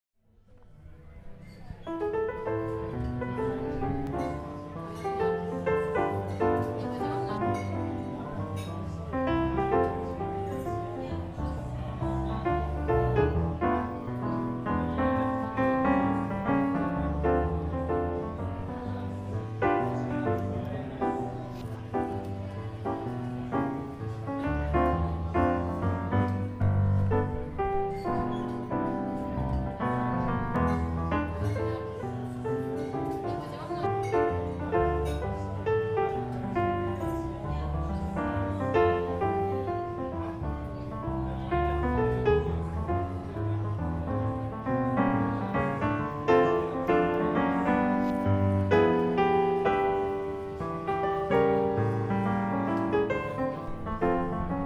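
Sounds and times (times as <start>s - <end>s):
solo piano: 1.1s - 54.6s.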